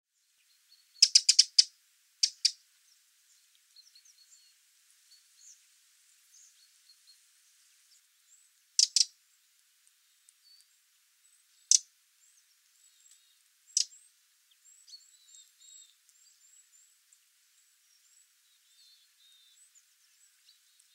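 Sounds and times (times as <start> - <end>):
Eurasian wren ticking calls: 0.7 - 2.6, 8.0 - 20.9.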